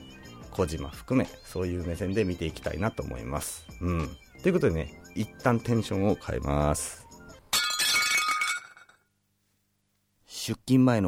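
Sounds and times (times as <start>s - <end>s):
speech: 0.6s - 7.0s, 10.4s - 11.0s
plate breaking: 7.5s - 9.0s.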